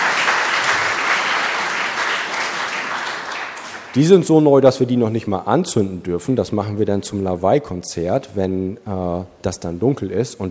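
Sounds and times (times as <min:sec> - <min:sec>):
audience applause in a church: 0:00.0 - 0:04.1
speech: 0:03.9 - 0:10.4.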